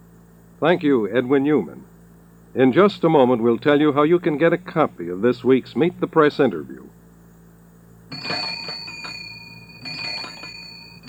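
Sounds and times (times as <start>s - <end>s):
speech: 0.6s - 1.9s, 2.6s - 7.0s
ice cream truck bells jingling: 8.1s - 11.0s.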